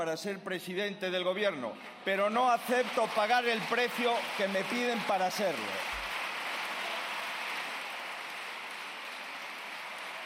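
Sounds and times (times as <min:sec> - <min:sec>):
speech: 0:00.0 - 0:06.0
applause in parliament: 0:01.6 - 0:10.2.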